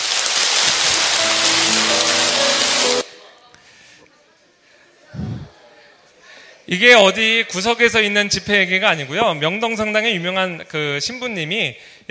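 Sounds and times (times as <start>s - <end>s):
audience applause: 0.0s - 3.1s
speech: 6.7s - 12.1s.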